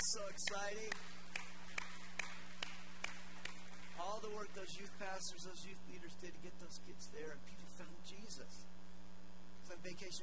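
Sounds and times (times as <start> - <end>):
audience clapping: 0.0 - 4.8
speech: 0.1 - 1.2, 4.0 - 8.8, 9.7 - 10.2.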